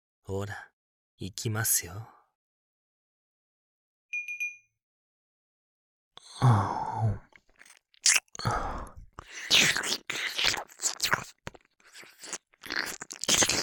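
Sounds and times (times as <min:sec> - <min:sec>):
speech: 0:00.3 - 0:02.2, 0:06.4 - 0:07.2
brief clear chime-like tone: 0:04.1 - 0:04.8
wet ASMR ear-licking and slurping sounds: 0:09.1 - 0:13.6.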